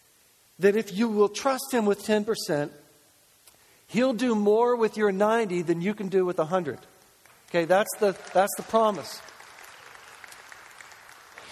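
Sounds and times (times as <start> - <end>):
speech: 0.6 - 2.8, 3.9 - 6.9, 7.5 - 9.4
audience clapping: 7.2 - 11.5.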